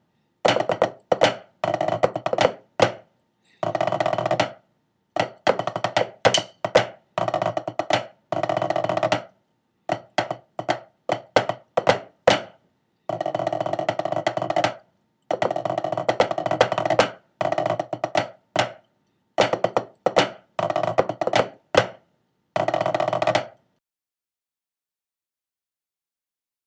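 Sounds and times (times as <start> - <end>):
tenor snare drum: 0.5 - 3.0, 3.6 - 4.6, 5.2 - 9.3, 9.9 - 18.8, 19.4 - 22.0, 22.6 - 23.5.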